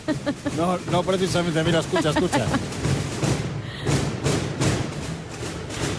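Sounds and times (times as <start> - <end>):
laughter: 0.0 - 2.7
Holy Week procession drums passing by: 0.0 - 5.8
speech: 0.1 - 3.4.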